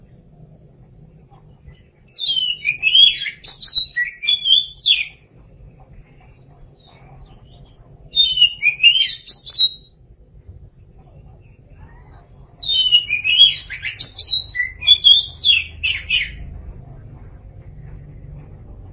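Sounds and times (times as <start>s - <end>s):
light low hum: 0.0s - 18.9s
Oriental magpie-robin singing: 1.8s - 5.2s, 6.8s - 9.9s, 12.5s - 16.5s.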